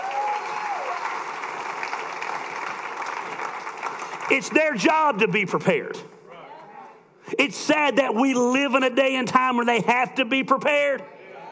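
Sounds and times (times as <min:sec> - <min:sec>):
audience applauding: 0:00.0 - 0:04.6
speech: 0:04.3 - 0:06.1, 0:07.4 - 0:11.2.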